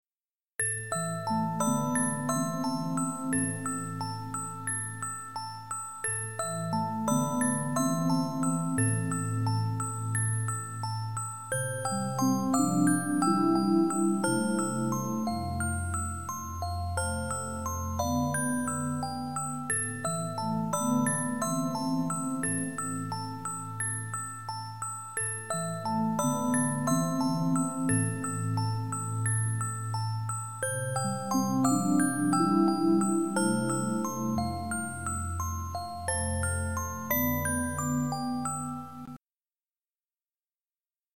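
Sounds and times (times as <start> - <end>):
music box: 0.6 - 39.2.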